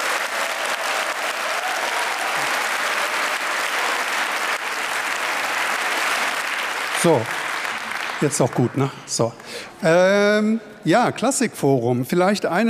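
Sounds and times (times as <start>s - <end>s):
audience applause: 0.0s - 9.4s
speech: 7.0s - 7.4s, 8.2s - 12.6s.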